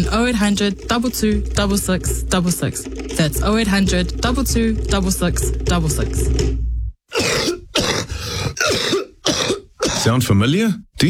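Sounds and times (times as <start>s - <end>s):
speech: 0.0s - 6.6s, 10.0s - 11.0s
person coughing: 7.1s - 10.2s.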